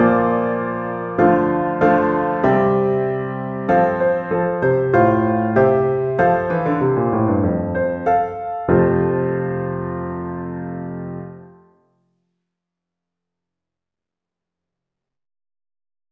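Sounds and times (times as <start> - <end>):
solo piano piece: 0.0 - 11.9.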